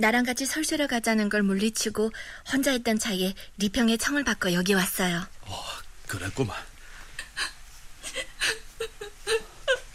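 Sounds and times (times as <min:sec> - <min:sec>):
speech: 0:00.0 - 0:06.7
person crying and sobbing: 0:07.2 - 0:09.9.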